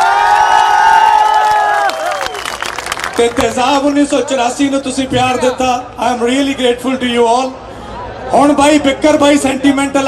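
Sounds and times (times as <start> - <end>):
audience at a live Punjabi event cheering, whooping and applauding: 0.0 - 3.4
speech: 3.2 - 7.6, 8.3 - 10.0.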